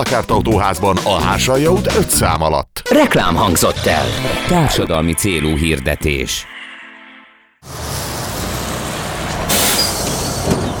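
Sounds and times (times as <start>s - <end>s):
speech: 0.0s - 6.6s
city bus arriving: 7.6s - 10.7s
air brake hiss: 9.5s - 10.6s.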